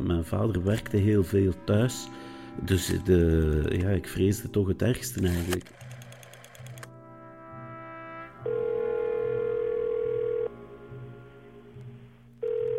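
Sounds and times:
speech: 0.0s - 5.8s
ringback tone of a call to a home phone: 8.4s - 10.5s, 12.4s - 12.7s
low rhythmic buzz on the phone line: 8.5s - 12.7s.

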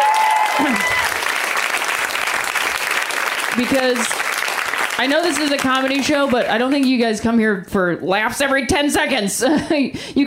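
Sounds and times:
audience round of applause: 0.0s - 7.0s
speech: 3.6s - 4.2s, 5.0s - 10.2s.

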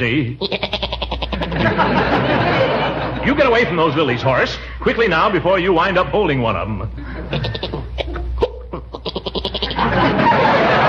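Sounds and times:
speech: 0.0s - 1.0s, 3.2s - 7.9s
goat bleating: 0.4s - 1.6s, 7.3s - 9.9s
laughter: 1.3s - 4.6s, 6.9s - 10.8s.

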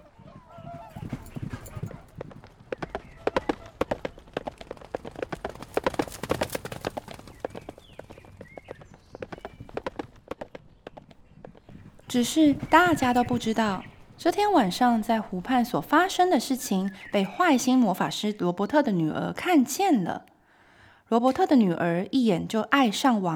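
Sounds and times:
horse hooves galloping away: 0.0s - 18.1s
speech: 12.2s - 20.3s, 21.1s - 23.3s.

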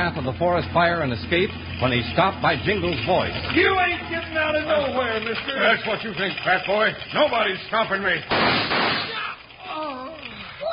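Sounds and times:
speech: 0.0s - 9.0s
gunshot effect from a Western radio drama: 8.3s - 9.3s.

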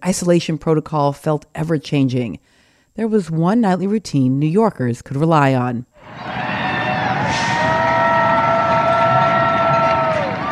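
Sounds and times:
speech: 0.0s - 6.4s
New York residents cheering and shouting for essential workers: 6.0s - 10.5s.

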